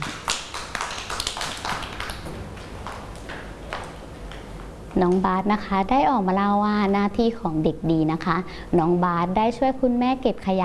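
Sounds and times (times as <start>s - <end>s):
children clapping: 0.0s - 4.5s
speech: 5.0s - 10.6s.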